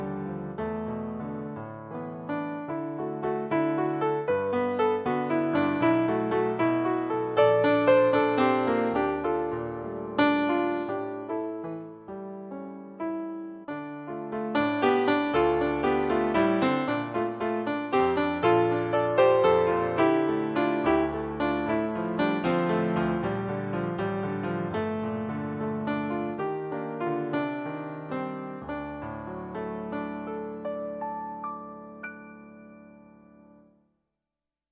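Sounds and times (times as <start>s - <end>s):
solo piano: 0.0s - 34.0s.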